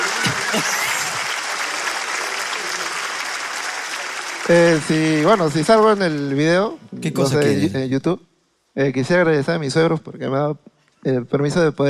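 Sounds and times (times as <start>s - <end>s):
audience applause: 0.0s - 6.5s
speech: 0.5s - 0.8s, 4.5s - 11.8s.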